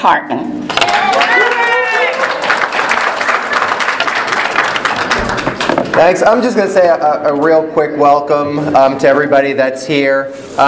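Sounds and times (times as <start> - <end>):
speech: 0.0 - 1.3, 6.0 - 10.6
audience clapping: 0.7 - 6.6.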